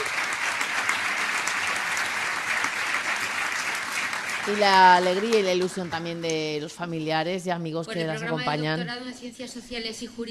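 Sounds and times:
audience applause at doctoral ceremony: 0.0 - 6.5
speech: 4.4 - 10.2.

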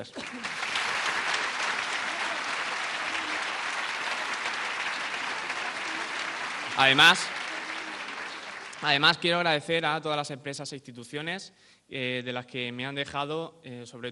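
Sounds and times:
speech: 0.0 - 0.6, 6.8 - 7.4, 8.8 - 14.1
audience applause: 0.0 - 9.5.

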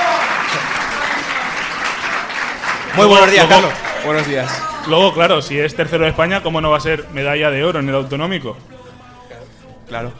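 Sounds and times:
studio audience applause: 0.0 - 5.2
speech: 3.0 - 8.7, 9.9 - 10.1.

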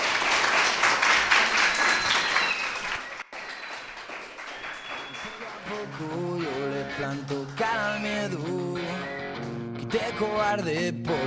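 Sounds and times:
group applauding for the teacher: 0.0 - 8.4
speech: 6.0 - 6.2, 7.0 - 9.0, 9.9 - 11.2.

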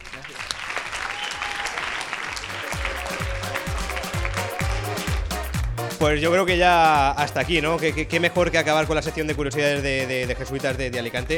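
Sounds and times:
crowd applauding: 0.0 - 6.0
speech: 6.0 - 11.3.

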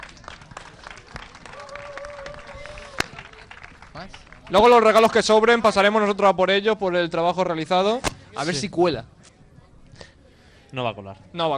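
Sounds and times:
audience applause: 0.0 - 4.5
speech: 4.0 - 9.1, 10.7 - 11.5.

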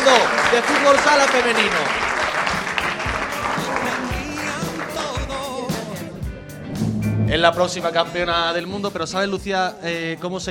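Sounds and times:
loud applause: 0.0 - 5.4
speech: 0.1 - 2.1, 7.3 - 10.4.

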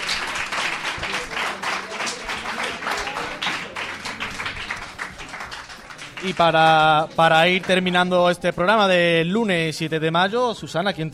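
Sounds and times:
audience applause: 0.0 - 8.0
speech: 6.2 - 11.1.

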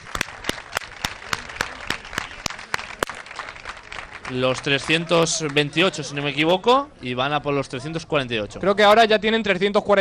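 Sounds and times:
audience applause: 0.0 - 6.3
speech: 4.3 - 9.9.

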